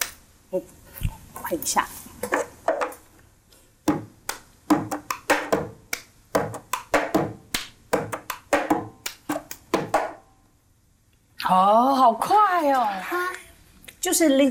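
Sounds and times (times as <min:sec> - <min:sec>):
speech: 0:00.5 - 0:00.8, 0:01.5 - 0:02.0, 0:11.5 - 0:13.4, 0:14.0 - 0:14.5
rhythm tapped with plastic cup on a table: 0:03.8 - 0:10.2
hand clapping: 0:03.9 - 0:10.2.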